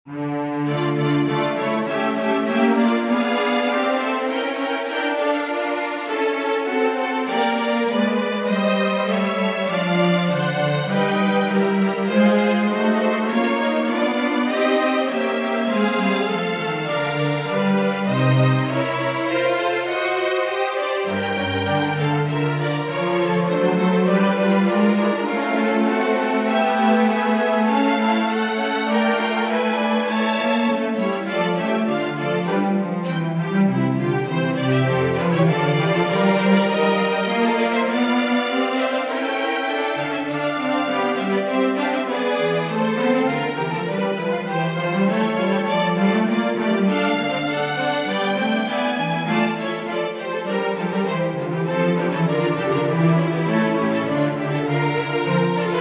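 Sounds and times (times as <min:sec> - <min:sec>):
instrumental music: 0:00.1 - 0:55.8.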